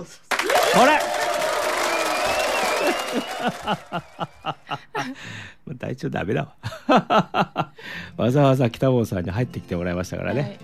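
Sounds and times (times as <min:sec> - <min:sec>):
speech: 0:00.0 - 0:01.4, 0:02.8 - 0:10.6
audience applause: 0:00.3 - 0:04.7
laughter: 0:02.4 - 0:05.2, 0:06.6 - 0:07.8.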